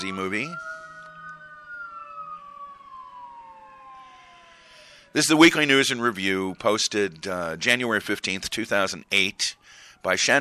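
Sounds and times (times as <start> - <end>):
speech: 0.0 - 0.7, 5.2 - 10.4
fire truck sirens passing by: 0.0 - 10.4.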